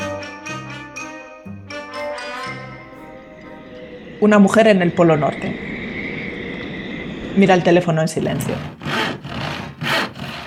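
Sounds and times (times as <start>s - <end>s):
speech: 4.2s - 5.7s, 7.4s - 8.8s
wood being sawn by hand: 8.3s - 10.4s.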